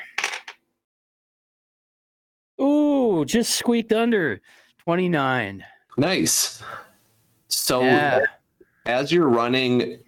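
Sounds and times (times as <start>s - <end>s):
dice rolling: 0.0s - 0.6s
speech: 3.2s - 6.8s, 7.5s - 10.0s.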